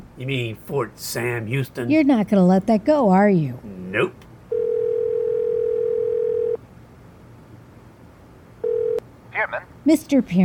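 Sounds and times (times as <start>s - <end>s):
speech: 0.2s - 4.3s, 9.9s - 10.4s
telephone dial tone while calling: 4.5s - 6.6s, 8.6s - 9.0s.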